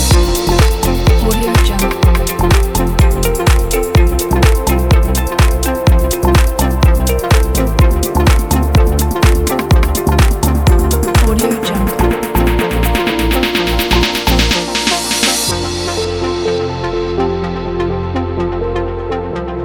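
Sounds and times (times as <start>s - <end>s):
cheerful inspiring upbeat corporate music: 0.0s - 19.0s.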